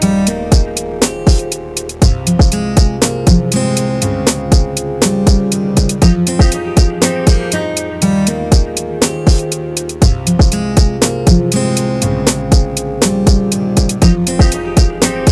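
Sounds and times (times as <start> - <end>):
summer guitar playing: 0.0 - 15.3.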